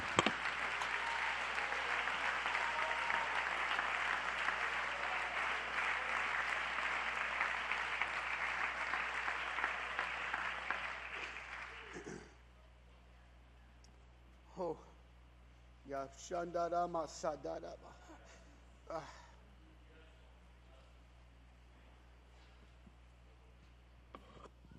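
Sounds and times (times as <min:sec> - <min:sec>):
audience clapping hands: 0:00.0 - 0:12.2
speech: 0:16.0 - 0:18.0, 0:18.9 - 0:19.2.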